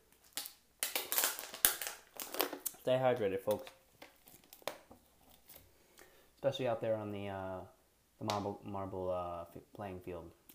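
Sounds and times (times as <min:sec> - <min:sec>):
plastic water bottle crinkling: 0:00.1 - 0:05.7
speech: 0:02.8 - 0:03.8, 0:06.4 - 0:10.5.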